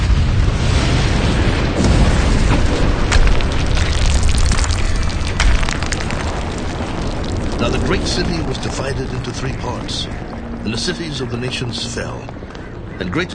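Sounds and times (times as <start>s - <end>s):
thunder: 0.0s - 10.7s
earthquake rumble: 0.0s - 13.3s
speech: 7.9s - 12.4s, 13.0s - 13.3s.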